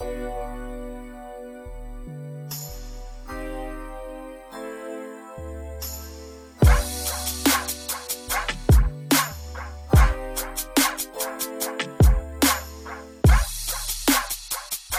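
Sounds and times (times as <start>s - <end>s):
music beat: 5.8s - 14.9s.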